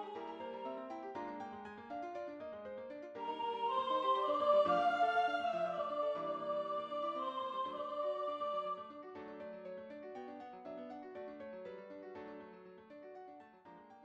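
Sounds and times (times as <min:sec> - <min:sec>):
soprano singing a sacred piece: 0:00.0 - 0:01.4, 0:03.2 - 0:09.4.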